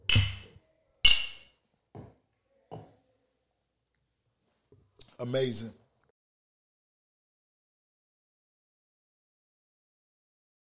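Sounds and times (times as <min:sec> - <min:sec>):
glasses clinking together in a toast: 0:01.1 - 0:01.5
speech: 0:05.2 - 0:05.8.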